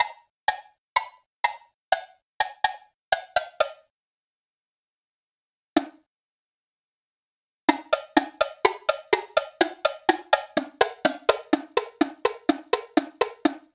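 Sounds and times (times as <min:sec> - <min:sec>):
woodblock: 0:00.0 - 0:03.9, 0:07.7 - 0:13.7.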